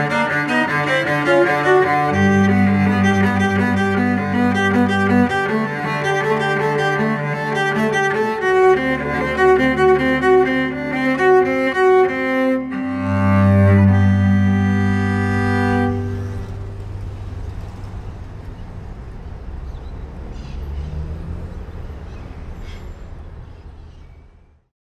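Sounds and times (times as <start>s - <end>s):
violin playing a piece in G major: 0.0s - 18.0s.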